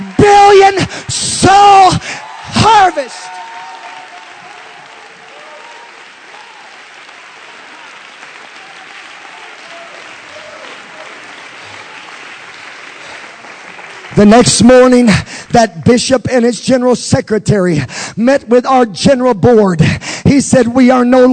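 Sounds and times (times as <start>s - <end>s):
audience applause: 0.0s - 15.5s
speech: 2.9s - 3.5s, 14.2s - 21.3s.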